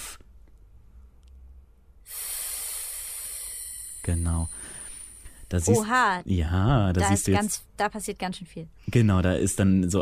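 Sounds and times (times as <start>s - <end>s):
person voicing a breathy hissing pff: 0.0s - 0.2s, 2.0s - 5.8s
speech: 4.1s - 4.8s, 5.5s - 10.0s.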